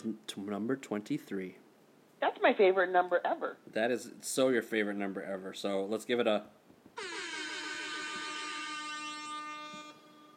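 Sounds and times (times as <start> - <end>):
speech: 0.0 - 1.6, 2.4 - 7.1
air horn sound effect: 7.0 - 10.3.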